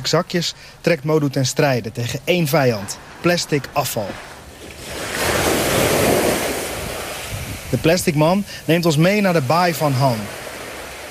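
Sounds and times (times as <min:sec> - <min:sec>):
speech: 0:00.0 - 0:05.0, 0:07.7 - 0:10.4
ocean surf breaking on a beach: 0:00.0 - 0:11.0
wind rumble: 0:01.9 - 0:08.7.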